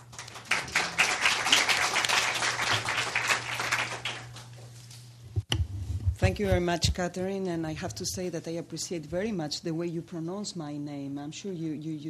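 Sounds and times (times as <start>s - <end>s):
audience clapping to welcome a speaker: 0.0s - 4.6s
faint low hum: 0.1s - 12.0s
speech: 6.3s - 12.0s.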